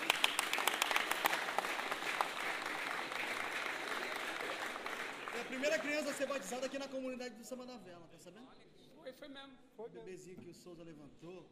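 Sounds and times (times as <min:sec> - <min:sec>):
crowd applauding: 0:00.0 - 0:07.0
speech: 0:05.5 - 0:11.5.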